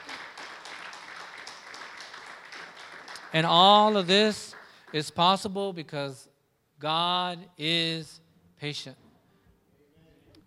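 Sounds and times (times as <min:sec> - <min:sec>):
audience clapping: 0:00.0 - 0:05.5
speech: 0:03.3 - 0:09.0.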